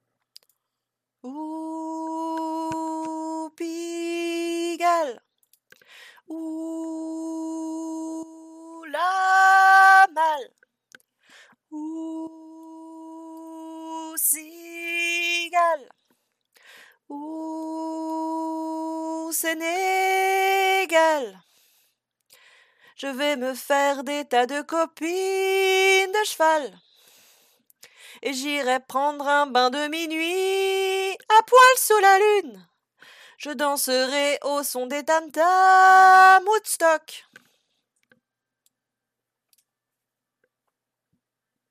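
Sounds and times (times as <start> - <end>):
soprano singing: 1.2 - 5.2, 6.2 - 10.6, 11.7 - 16.0, 17.1 - 21.4, 23.0 - 26.8, 28.2 - 32.6, 33.4 - 37.2.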